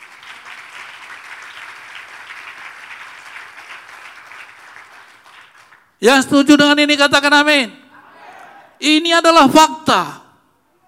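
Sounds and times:
audience applause: 0.0 - 5.8
speech: 6.0 - 7.8, 8.8 - 10.2.

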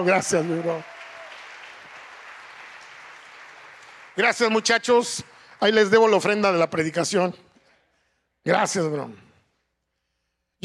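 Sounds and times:
speech: 0.0 - 0.9, 4.2 - 7.4, 8.4 - 9.3
audience applause: 0.0 - 6.5.

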